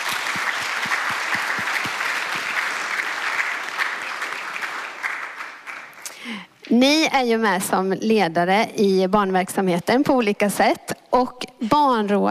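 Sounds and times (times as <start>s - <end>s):
audience applause: 0.0s - 6.2s
speech: 6.7s - 12.2s.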